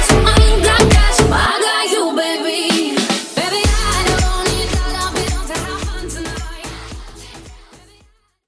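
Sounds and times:
drum beat: 0.0 - 1.4, 2.7 - 7.8.

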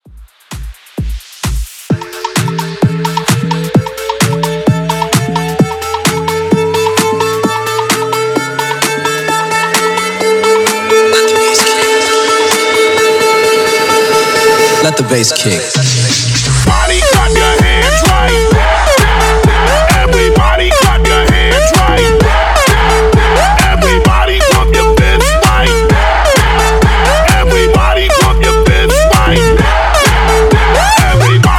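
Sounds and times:
extended hype track at 129 BPM: 0.0 - 31.5.

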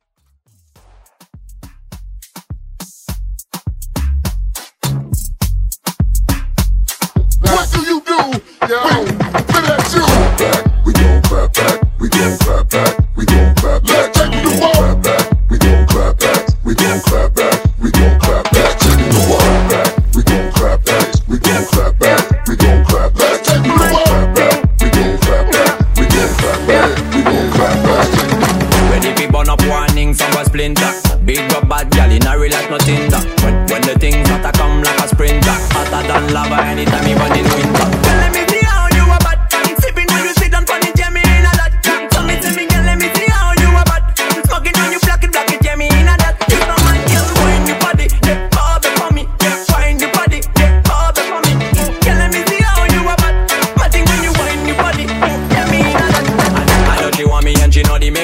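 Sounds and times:
moombahton music: 0.4 - 58.2.

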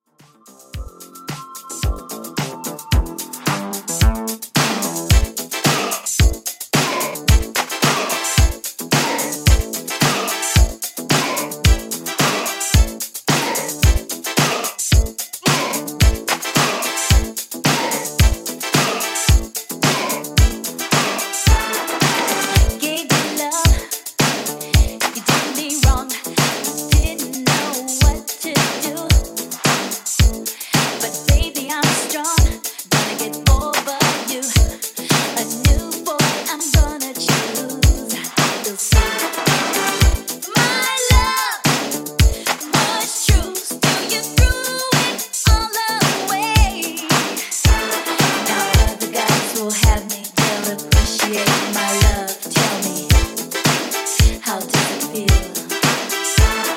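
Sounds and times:
80s music at 110 bpm: 0.1 - 56.7.

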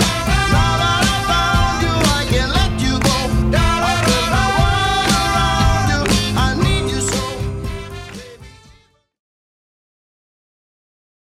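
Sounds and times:
60s beat at 118 bpm: 0.0 - 8.8.

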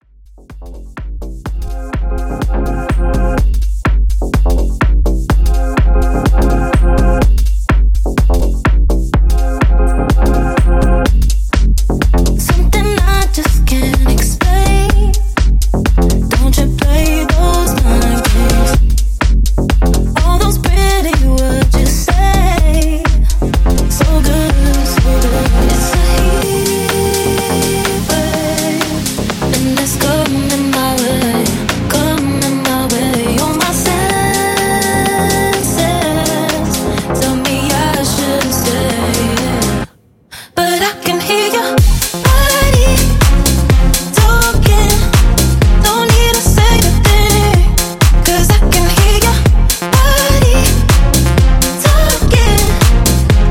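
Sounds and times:
extended mix electronic dance music at 125 BPM: 0.3 - 39.9, 40.9 - 53.5.

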